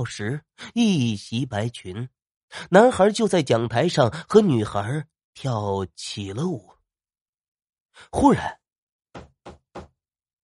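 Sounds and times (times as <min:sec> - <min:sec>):
speech: 0:00.0 - 0:06.7, 0:08.0 - 0:08.6
knocking on a door: 0:09.2 - 0:10.0.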